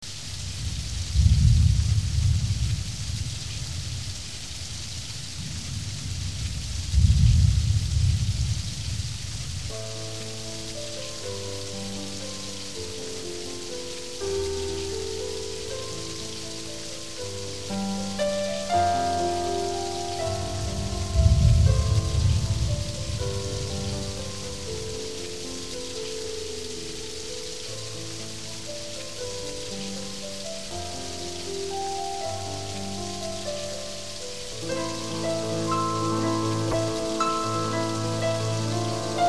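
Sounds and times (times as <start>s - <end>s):
rain: 0.0s - 39.2s
thunder: 0.6s - 4.0s, 5.3s - 9.5s, 20.5s - 23.6s.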